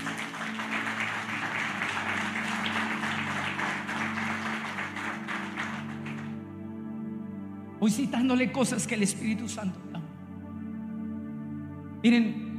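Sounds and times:
audience applause: 0.0s - 6.4s
speech: 7.8s - 10.0s, 12.0s - 12.4s.

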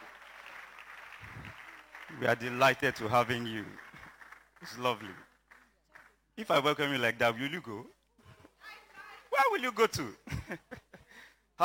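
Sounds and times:
audience applause: 0.0s - 6.2s
speech: 2.1s - 3.8s, 4.6s - 5.3s, 6.4s - 8.0s, 9.6s - 10.7s.

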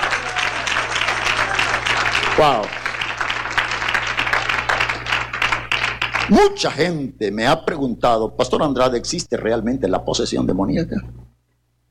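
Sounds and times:
audience applause: 0.0s - 6.5s
speech: 2.4s - 2.8s, 6.3s - 11.2s.

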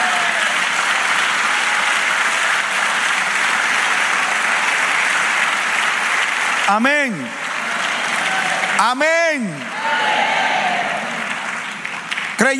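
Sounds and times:
audience applause: 0.0s - 12.5s
speech: 6.7s - 7.5s, 8.8s - 10.4s, 12.4s - 12.5s.

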